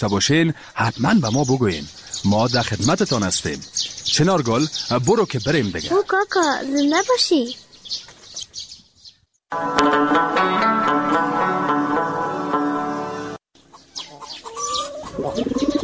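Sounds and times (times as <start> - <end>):
speech: 0.0 - 8.1, 9.5 - 12.2
other birds chirping and clucking: 0.0 - 9.2, 13.6 - 15.8
pigeon cooing: 14.0 - 15.8.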